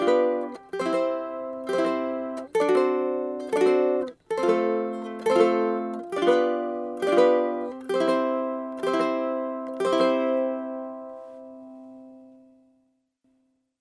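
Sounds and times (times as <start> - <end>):
six-string guitar: 0.0 - 12.8
ukulele: 0.0 - 12.8.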